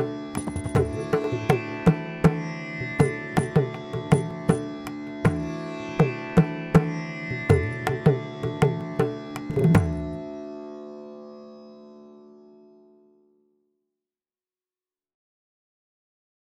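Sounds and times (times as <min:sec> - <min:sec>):
raga improvisation backing: 0:00.0 - 0:12.9.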